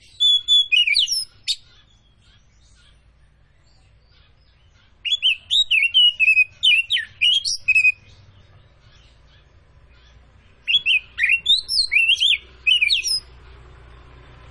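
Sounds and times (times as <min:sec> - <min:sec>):
Oriental magpie-robin of the Tretes form singing vigorously with whistled phrases: 0:00.0 - 0:13.4.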